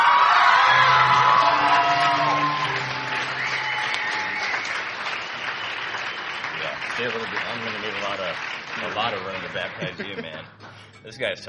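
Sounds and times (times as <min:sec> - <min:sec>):
audience whooping and cheering: 0:00.0 - 0:08.5
audience applauding: 0:00.0 - 0:10.6
speech: 0:07.3 - 0:11.4
laughter: 0:09.0 - 0:10.8.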